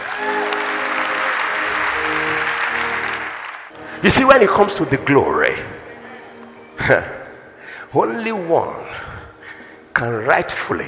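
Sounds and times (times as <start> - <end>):
audience clapping: 0.0 - 3.8
speech: 4.0 - 5.8, 6.9 - 7.2, 7.9 - 9.0, 10.0 - 10.8.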